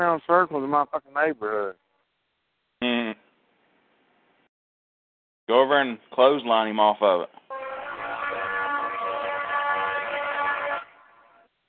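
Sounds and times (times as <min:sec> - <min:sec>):
speech: 0:00.0 - 0:01.8, 0:02.8 - 0:03.2, 0:05.5 - 0:07.4
train horn: 0:07.5 - 0:11.5.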